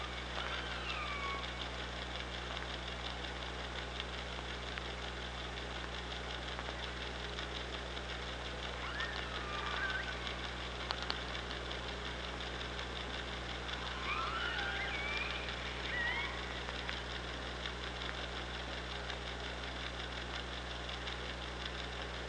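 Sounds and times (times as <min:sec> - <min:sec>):
killer whale calls: 0:00.0 - 0:02.4, 0:08.6 - 0:11.4, 0:12.5 - 0:17.7
engine hum: 0:00.0 - 0:22.2.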